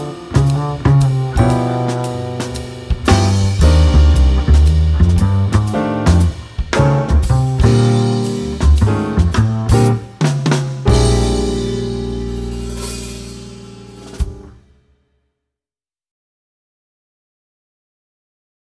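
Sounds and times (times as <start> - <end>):
jazz bass solo: 0.0 - 14.6.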